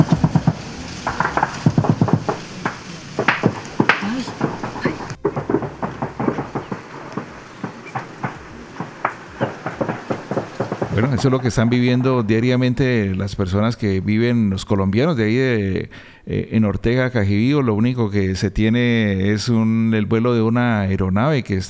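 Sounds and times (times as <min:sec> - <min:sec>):
rifle fire: 0:00.0 - 0:12.6
explosions: 0:00.0 - 0:13.2
speech: 0:11.1 - 0:21.6.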